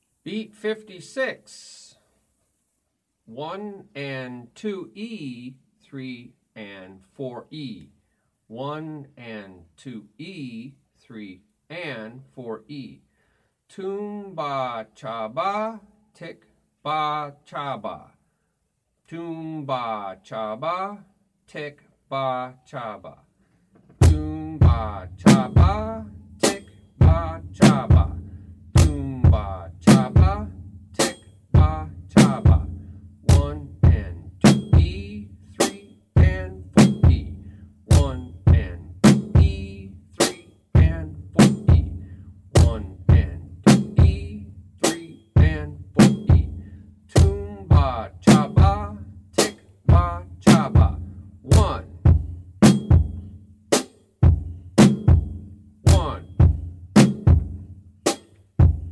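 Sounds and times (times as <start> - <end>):
drum beat: 23.8 - 58.9.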